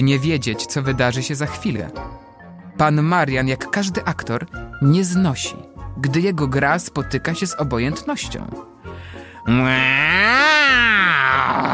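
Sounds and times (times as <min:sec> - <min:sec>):
speech: 0:00.0 - 0:02.2, 0:02.8 - 0:08.7, 0:09.4 - 0:11.7
man roaring imitating an animal: 0:09.5 - 0:11.7.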